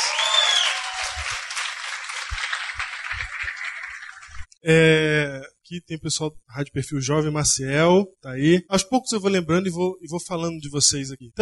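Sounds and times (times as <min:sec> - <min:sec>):
audience applause: 0:00.0 - 0:04.5
speech: 0:04.6 - 0:11.3.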